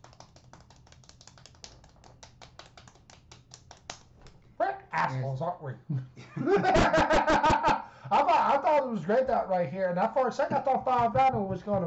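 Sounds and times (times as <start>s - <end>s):
golf clap of light hand claps: 0.0s - 4.4s, 10.5s - 11.8s
speech: 5.0s - 11.8s
laughter: 5.9s - 8.7s.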